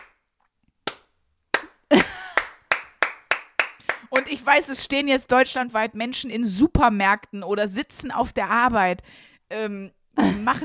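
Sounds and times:
slow appreciative hand clapping: 0.0 - 0.2, 0.8 - 4.4
speech: 4.3 - 10.6.

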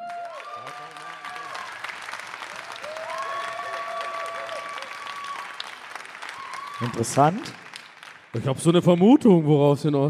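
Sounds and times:
whistles or cheering voices: 0.0 - 7.5
live audience applause: 0.0 - 8.8
speech: 6.8 - 7.6, 8.4 - 10.0.

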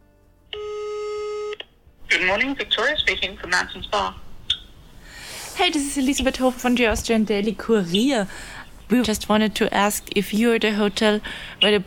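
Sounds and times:
telephone ringing tone during a call: 0.6 - 1.6
speech: 2.2 - 4.2, 5.6 - 11.8.

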